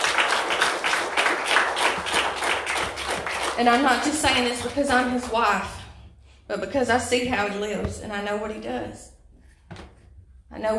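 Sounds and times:
audience hand clapping: 0.0 - 4.8
speech: 3.6 - 5.8, 6.5 - 9.1, 10.5 - 10.7.

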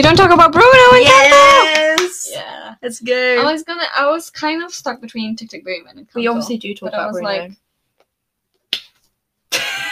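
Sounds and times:
speech: 0.0 - 7.6
single sharp hand slap: 8.7 - 9.1.

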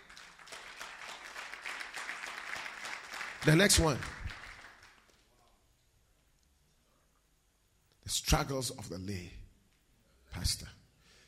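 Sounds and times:
audience clapping: 0.0 - 5.6
speech: 3.4 - 4.2, 8.3 - 9.4, 10.4 - 10.7.

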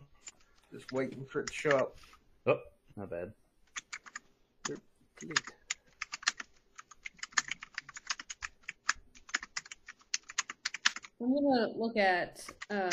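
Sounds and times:
speech: 0.7 - 3.4, 4.7 - 5.6, 11.2 - 12.9
typing on a computer keyboard while chatting in Roll 20: 3.7 - 11.2, 12.4 - 12.9.

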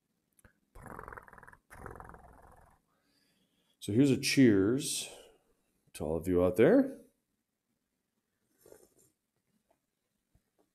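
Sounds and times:
cat growling: 0.8 - 2.8
speech: 3.8 - 5.2, 6.0 - 7.0.

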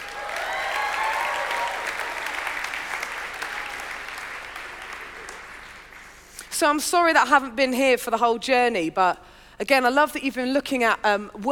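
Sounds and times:
audience applause: 0.0 - 6.3
speech: 6.6 - 11.5.

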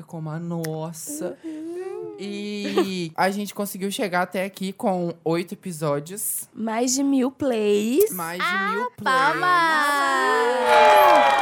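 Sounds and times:
speech: 0.0 - 1.6, 2.2 - 11.4
cheering: 9.9 - 11.4
applause: 10.6 - 11.4.

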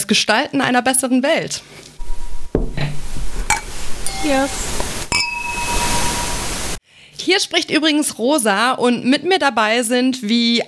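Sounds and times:
speech: 0.1 - 1.9, 4.2 - 4.8, 7.2 - 10.6
glasses clinking in a toast: 2.0 - 6.7.

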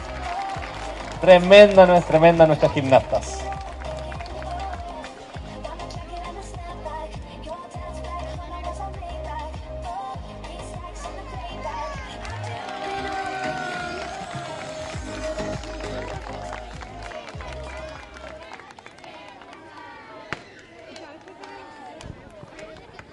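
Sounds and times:
crowd applause and cheering for gymnasts: 0.0 - 5.4, 11.0 - 23.1
speech: 1.2 - 3.5.

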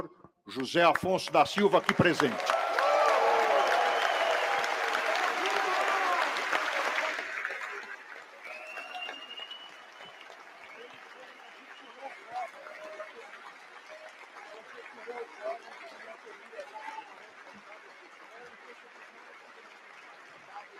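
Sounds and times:
speech: 0.5 - 2.7
audience applause: 0.6 - 20.7.

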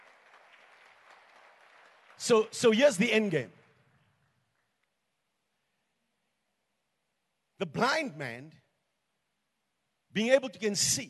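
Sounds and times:
audience clapping: 0.0 - 4.9
speech: 2.2 - 3.6, 7.6 - 8.6, 10.2 - 11.0.

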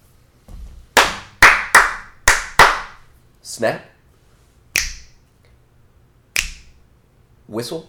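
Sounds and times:
hand clapping: 1.0 - 3.0, 4.8 - 5.2, 6.4 - 6.8
speech: 3.4 - 3.9, 7.5 - 7.8.

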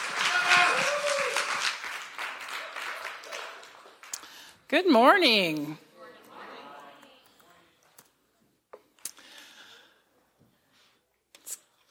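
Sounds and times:
audience applause: 0.0 - 4.5
speech: 4.7 - 5.9.

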